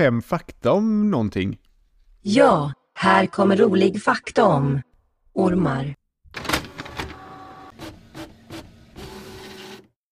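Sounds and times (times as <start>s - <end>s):
speech: 0.0s - 6.5s
small printer printing a sheet of paper: 6.4s - 10.0s.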